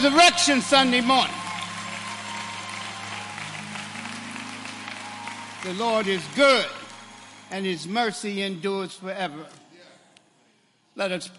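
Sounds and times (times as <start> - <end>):
speech: 0.0 - 1.4, 5.6 - 6.8, 7.5 - 9.6, 11.0 - 11.3
audience hand clapping: 0.0 - 8.1.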